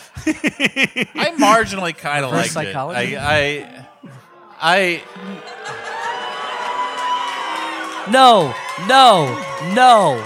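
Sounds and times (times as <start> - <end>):
laughter: 0.0 - 6.9
speech: 0.2 - 5.8, 8.0 - 10.2
audience murmuring: 1.0 - 6.1
audience booing at a live show: 2.4 - 10.2.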